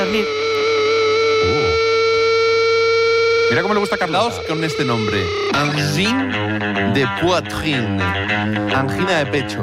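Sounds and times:
speech: 0:00.0 - 0:00.4, 0:03.5 - 0:09.6
warbling bending tone: 0:00.0 - 0:06.0
buzzing electronic drone: 0:00.0 - 0:07.2.

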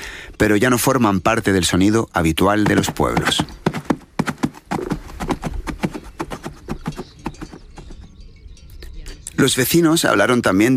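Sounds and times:
speech: 0:00.4 - 0:03.6, 0:09.4 - 0:10.7
hooves of working horses clip-clopping: 0:02.5 - 0:08.2.

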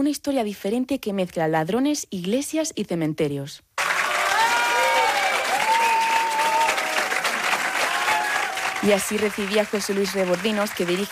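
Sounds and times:
speech: 0:00.0 - 0:03.7, 0:08.8 - 0:11.1
warm farewell ovation applause: 0:03.8 - 0:11.1.

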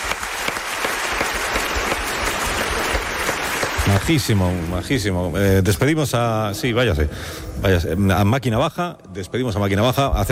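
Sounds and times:
crowd applause: 0:00.0 - 0:05.2
speech: 0:03.9 - 0:10.3.

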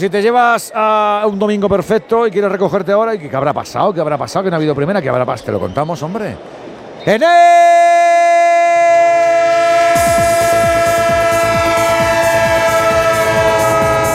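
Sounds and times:
speech: 0:00.0 - 0:08.1
train horn sound effect: 0:09.0 - 0:14.1.

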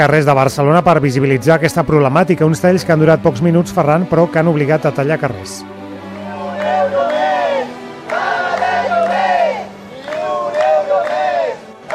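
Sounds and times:
speech: 0:00.0 - 0:05.8
protesters chanting slogans: 0:06.2 - 0:11.9.

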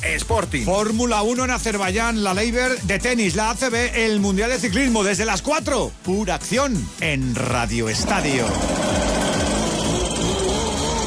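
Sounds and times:
speech: 0:00.2 - 0:09.0
leaf blower running on a Sunday: 0:08.0 - 0:11.0.

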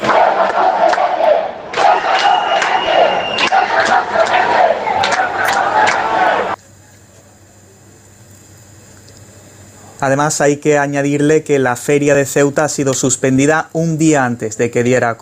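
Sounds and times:
large crowd shouting and chanting while awaiting an arrival: 0:00.0 - 0:06.6
speech: 0:10.1 - 0:15.2.

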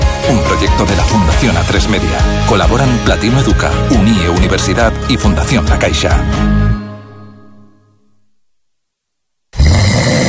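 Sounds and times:
speech: 0:00.3 - 0:06.6
loud snoring: 0:09.6 - 0:10.2.

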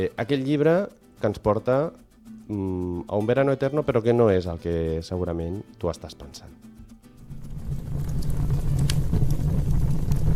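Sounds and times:
speech: 0:00.0 - 0:06.7
firewood crackling in a fire in winter: 0:07.2 - 0:10.3.

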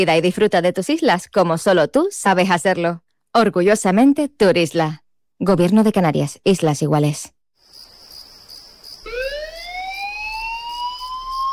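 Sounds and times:
speech: 0:00.0 - 0:07.4
emergency alarm siren for a Tenerife fire brigade callout: 0:09.0 - 0:11.5.

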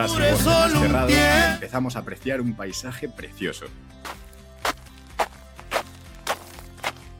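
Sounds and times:
speech: 0:00.0 - 0:04.1
footsteps of a hiker climbing uphill on a mountain trail toward Cerro de Inés: 0:04.0 - 0:07.1.

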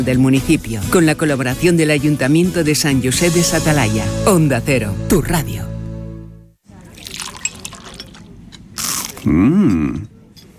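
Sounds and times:
speech: 0:00.0 - 0:05.7, 0:09.2 - 0:10.1
crunchy first bite of food and chewing: 0:08.8 - 0:10.0.

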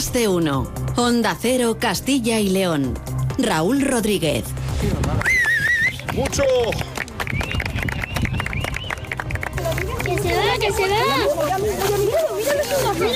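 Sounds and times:
speech: 0:00.0 - 0:05.3, 0:06.2 - 0:07.4, 0:10.6 - 0:13.1
crowd applauding a solar eclipse: 0:05.2 - 0:11.3.

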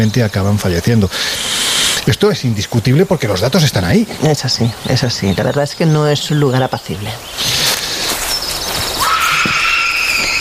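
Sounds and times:
speech: 0:00.0 - 0:07.5
constant hiss: 0:00.0 - 0:10.3
eerie scream-like cry: 0:09.0 - 0:10.3
shrill rising tone: 0:09.0 - 0:10.3.

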